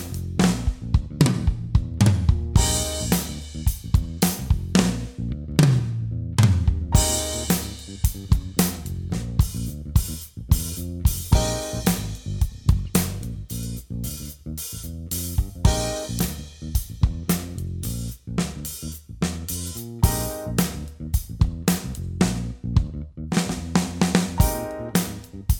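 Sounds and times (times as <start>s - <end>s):
pop drum fills: 0.0s - 22.4s, 23.4s - 25.5s.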